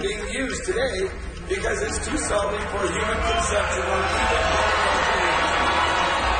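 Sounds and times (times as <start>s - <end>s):
speech: 0.0s - 5.0s
crowd booing at a county meeting: 3.1s - 6.3s.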